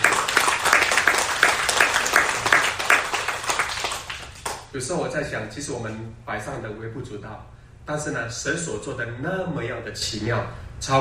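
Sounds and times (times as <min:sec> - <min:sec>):
audience clapping hands: 0:00.0 - 0:04.7
speech: 0:04.7 - 0:10.9.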